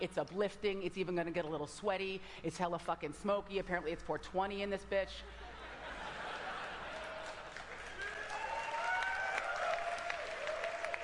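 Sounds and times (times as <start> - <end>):
speech: 0.0 - 5.5
laughter: 5.3 - 7.8
crowd applauding at back of theater: 6.4 - 11.0
whoops and cheers: 7.8 - 11.0.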